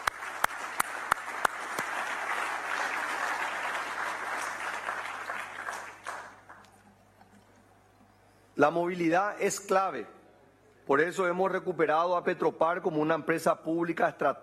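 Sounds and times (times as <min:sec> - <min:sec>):
audience applause: 0:00.0 - 0:06.8
speech: 0:08.6 - 0:10.2, 0:10.9 - 0:14.4.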